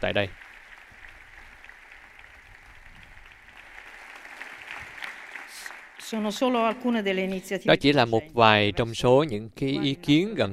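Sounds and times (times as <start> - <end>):
speech: 0.0 - 0.5, 6.1 - 10.5
audience applause at a university gathering in Rome: 0.0 - 6.7.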